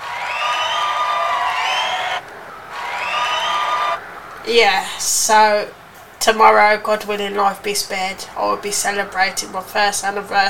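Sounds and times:
crowd cheering: 0:00.0 - 0:04.4
speech: 0:04.5 - 0:10.4.

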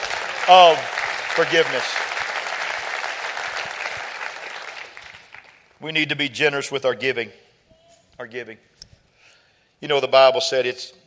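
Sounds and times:
crowd clapping: 0:00.0 - 0:05.8
speech: 0:00.5 - 0:02.1, 0:05.8 - 0:07.4, 0:08.2 - 0:08.7, 0:09.8 - 0:11.0.

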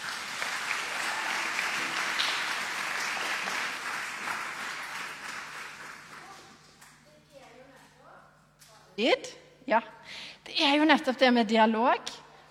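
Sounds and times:
audience applause: 0:00.0 - 0:06.7
speech: 0:09.0 - 0:12.4.

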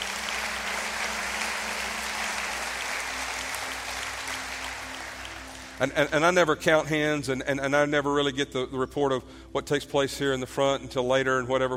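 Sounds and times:
audience clapping: 0:00.0 - 0:06.5
speech: 0:05.8 - 0:11.7.

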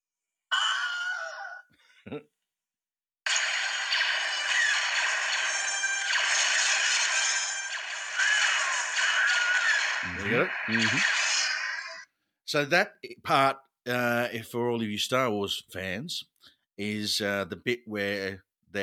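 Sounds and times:
Wilhelm scream in film clip: 0:00.5 - 0:01.6, 0:03.3 - 0:12.1
speech: 0:02.1 - 0:02.4, 0:10.3 - 0:11.2, 0:12.5 - 0:18.8
dense noisy film action sound: 0:03.3 - 0:12.2.

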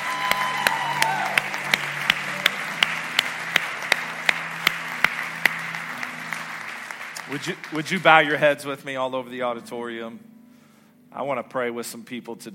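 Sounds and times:
audience applause and hand clapping: 0:00.0 - 0:08.6
speech: 0:07.3 - 0:10.3, 0:11.1 - 0:12.5.

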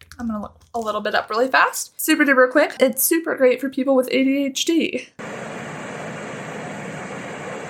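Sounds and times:
speech: 0:00.2 - 0:05.3
brown noise played back: 0:05.2 - 0:07.6.

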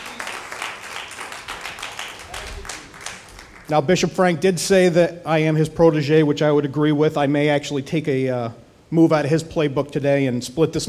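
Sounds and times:
crowd clapping: 0:00.0 - 0:03.9
speech: 0:03.7 - 0:10.8.

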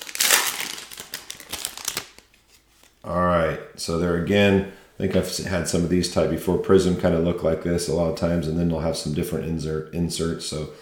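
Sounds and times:
foil pack of trading cards crinkling as it is opened: 0:00.0 - 0:03.0
speech: 0:03.0 - 0:10.8.

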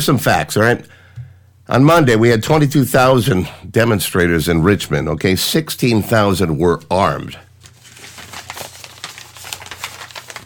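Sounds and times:
speech: 0:00.0 - 0:01.0, 0:01.7 - 0:07.5
papers being shuffled: 0:07.6 - 0:10.4.

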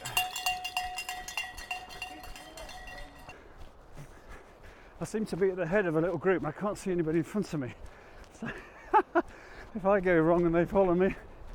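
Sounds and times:
handheld bell rung rapidly: 0:00.0 - 0:03.5
speech: 0:05.0 - 0:08.6, 0:09.8 - 0:11.3.

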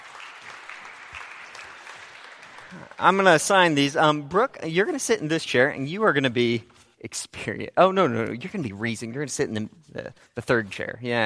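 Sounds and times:
crowd applauding: 0:00.0 - 0:04.0
speech: 0:02.7 - 0:11.2.

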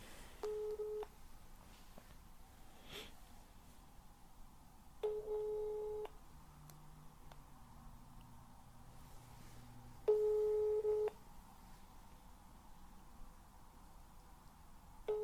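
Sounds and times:
quiet hiss: 0:00.0 - 0:15.2
phone ringback tone beeps: 0:00.4 - 0:01.1, 0:05.0 - 0:06.1, 0:10.1 - 0:11.2, 0:15.1 - 0:15.2
faint breath: 0:02.6 - 0:03.3.

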